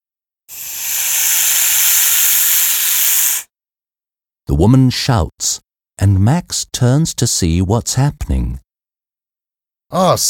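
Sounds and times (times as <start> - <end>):
snake hissing as it attacks: 0.5 - 3.5
speech: 4.5 - 8.7, 9.9 - 10.2.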